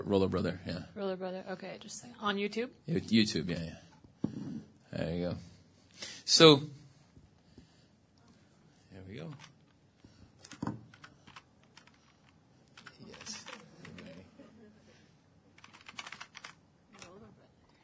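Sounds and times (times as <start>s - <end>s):
speech: 0.0s - 3.9s, 4.9s - 6.8s, 9.1s - 9.5s
typing on a computer keyboard: 10.9s - 12.2s, 15.6s - 17.2s.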